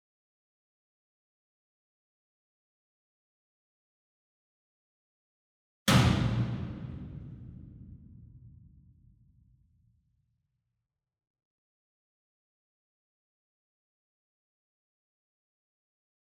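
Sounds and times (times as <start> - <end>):
distant 66 inch Verdi drum hit with whip beater: 5.9 - 8.8.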